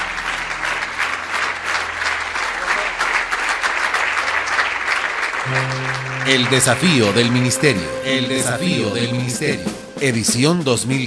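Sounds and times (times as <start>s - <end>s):
church congregation clapping in praise during a worship service: 0.0s - 9.8s
speech: 5.5s - 11.0s.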